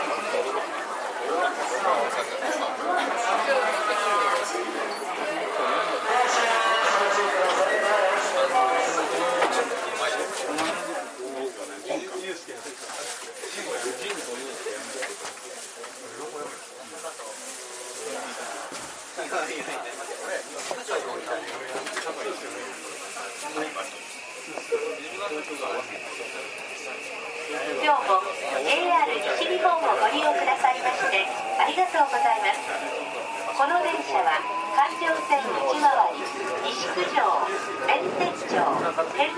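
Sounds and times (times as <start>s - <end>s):
JR 323 series train running noise: 0.0s - 39.3s
passengers talking aboard a JR 323 series train: 0.0s - 39.3s
JR 323 series train motor whine: 22.9s - 39.3s.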